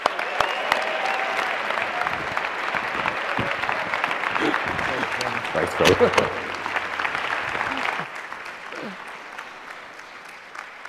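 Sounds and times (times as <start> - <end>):
college audience applauding to welcome a reverend as guest speaker: 0.0 - 10.8
laughter: 2.2 - 8.1
speech: 5.8 - 6.5.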